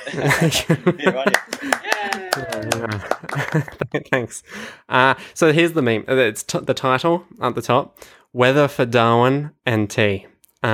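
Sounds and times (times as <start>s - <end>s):
laughter: 0.0s - 4.4s
speech: 0.0s - 10.7s
voices cheering and talking: 1.0s - 3.0s
applause: 1.1s - 3.8s.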